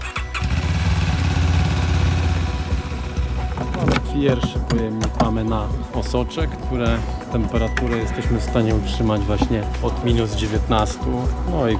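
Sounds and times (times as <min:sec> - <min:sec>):
motorcycle ambulance engine running: 0:00.3 - 0:04.0
speech: 0:04.2 - 0:11.7.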